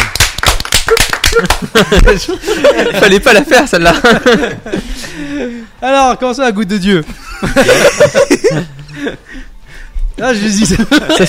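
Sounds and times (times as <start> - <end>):
audience applause: 0.0 - 1.8
laughter: 0.9 - 5.7, 7.0 - 9.5, 10.4 - 11.2
speech: 1.4 - 9.5, 10.2 - 11.2.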